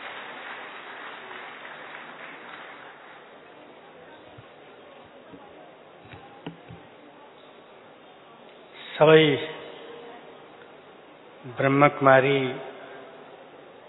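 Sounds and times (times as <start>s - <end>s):
crowd applauding welcoming a speaker: 0.0s - 3.8s
speech: 9.0s - 9.6s, 11.6s - 12.7s.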